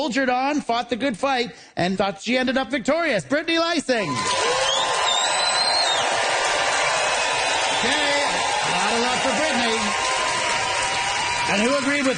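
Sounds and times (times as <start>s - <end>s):
speech: 0.0s - 4.7s, 11.5s - 12.1s
audience applause vote: 4.1s - 12.1s.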